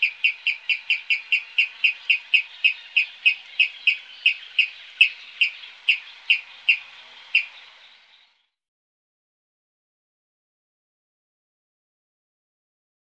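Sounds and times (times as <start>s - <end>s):
water rail calling: 0.0s - 8.2s
birds: 0.0s - 8.6s.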